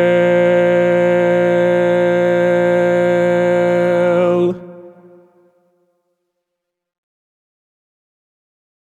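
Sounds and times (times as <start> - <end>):
baritone singing medley: 0.0 - 5.6.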